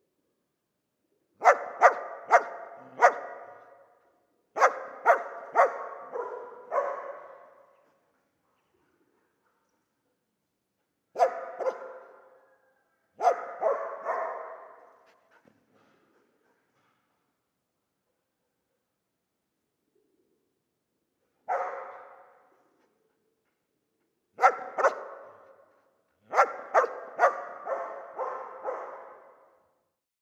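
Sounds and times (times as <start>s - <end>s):
dog barking: 1.4s - 4.0s, 4.6s - 7.8s, 11.1s - 15.1s, 21.4s - 22.5s, 24.4s - 29.7s.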